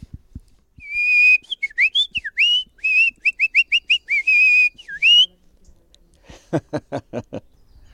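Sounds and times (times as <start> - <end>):
person whistling an imitation of a nightingale song: 0.8 - 5.3
laughter: 6.3 - 7.5.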